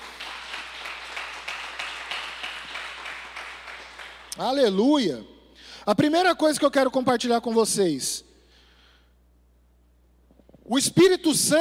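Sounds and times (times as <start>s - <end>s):
audience applause: 0.0s - 4.4s
speech: 4.4s - 8.3s, 10.7s - 11.5s.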